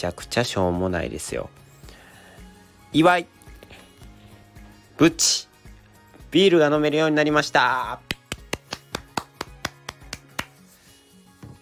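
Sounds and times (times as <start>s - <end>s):
speech: 0.0s - 1.6s, 2.9s - 3.4s, 5.0s - 5.5s, 6.3s - 8.1s
one person clapping hands: 8.0s - 10.7s.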